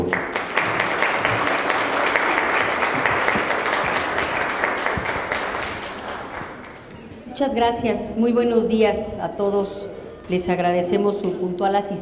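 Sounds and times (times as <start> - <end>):
audience applause: 0.0 - 6.9
speech: 7.4 - 12.0.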